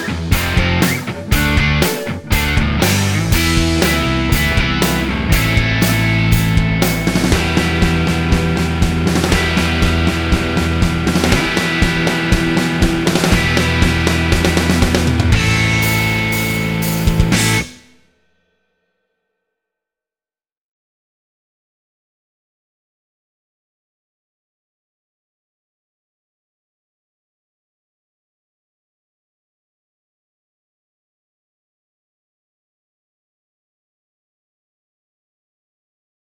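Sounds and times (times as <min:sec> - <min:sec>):
rock guitar backing: 0:00.0 - 0:18.0.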